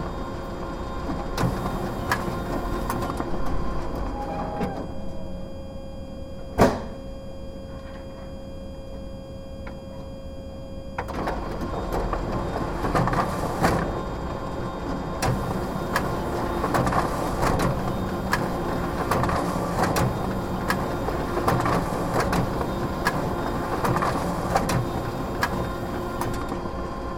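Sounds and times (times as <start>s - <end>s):
photocopier running heard from inside its tray: 0.0s - 5.6s, 11.0s - 27.1s.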